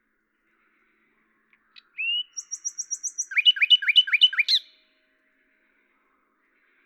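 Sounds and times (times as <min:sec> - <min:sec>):
common nightingale singing: 0:01.8 - 0:04.8.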